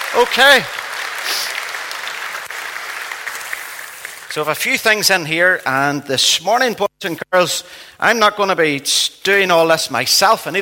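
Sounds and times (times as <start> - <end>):
audience applause: 0.0 - 4.8
speech: 0.1 - 1.6, 4.4 - 10.6.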